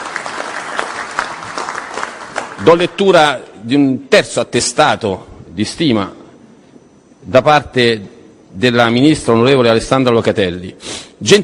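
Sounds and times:
audience applause for a member of parliament at an inauguration event: 0.0 - 3.0
speech: 2.6 - 6.2, 7.2 - 11.4.

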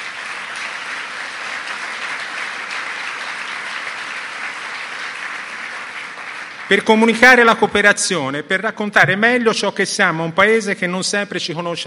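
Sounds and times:
audience applause in a hall: 0.0 - 7.5
speech: 6.7 - 11.8.

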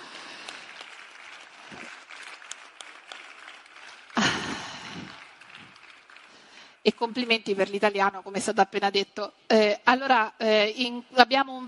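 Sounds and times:
audience applause: 0.0 - 7.3
speech: 6.9 - 11.6.

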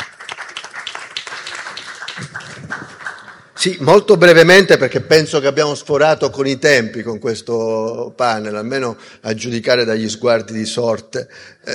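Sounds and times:
audience applauding: 0.0 - 3.7
speech: 3.6 - 11.7.

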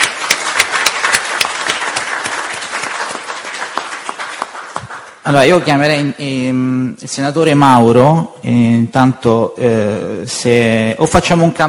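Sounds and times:
audience applause: 0.0 - 5.2
speech: 5.3 - 11.6.

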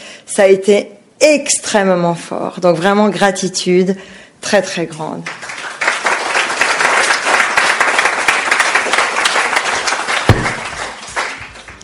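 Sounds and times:
speech: 0.4 - 5.4
applause: 5.2 - 11.8.

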